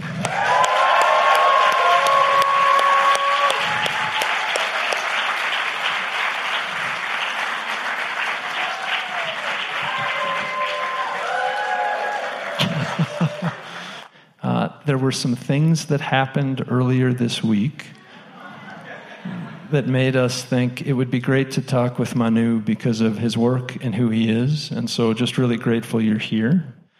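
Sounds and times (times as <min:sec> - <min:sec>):
audience in Portland applauding a guest at an evening talk: 0:00.0 - 0:14.1
laughter: 0:12.3 - 0:14.1, 0:18.0 - 0:20.6
speech: 0:15.0 - 0:18.0, 0:19.7 - 0:26.8.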